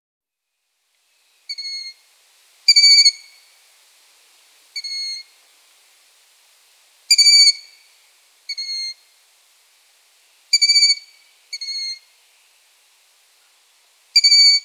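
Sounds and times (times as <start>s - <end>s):
long-eared owl chicks giving squeaky calls: 1.5s - 2.0s, 2.7s - 3.4s, 4.8s - 5.3s, 7.1s - 7.9s, 8.5s - 9.0s, 10.5s - 12.1s, 14.2s - 14.6s.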